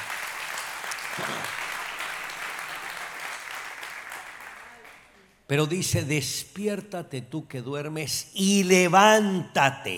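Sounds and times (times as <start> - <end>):
audience applause: 0.0 - 5.1
speech: 5.5 - 9.9.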